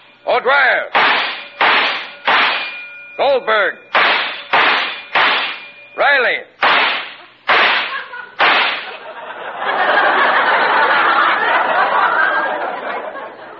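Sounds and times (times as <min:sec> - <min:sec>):
speech: 0:00.4 - 0:01.1, 0:03.4 - 0:03.8, 0:06.0 - 0:06.5
gunshots at a shooting gallery target: 0:00.9 - 0:02.8, 0:04.0 - 0:05.7, 0:06.6 - 0:09.0
laughter: 0:07.2 - 0:13.5.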